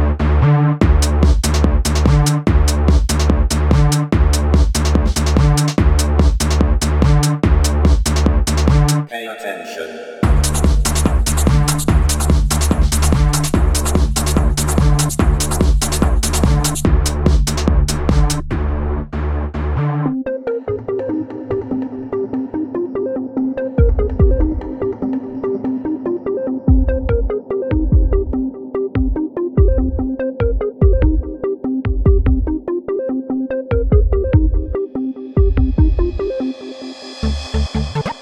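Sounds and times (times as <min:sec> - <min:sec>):
electronic music: 0:00.2 - 0:38.2.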